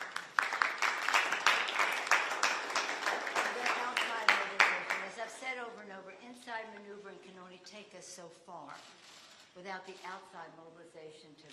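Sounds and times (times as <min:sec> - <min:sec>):
audience applause: 0:00.0 - 0:05.2
speech: 0:08.0 - 0:09.0, 0:09.6 - 0:11.5.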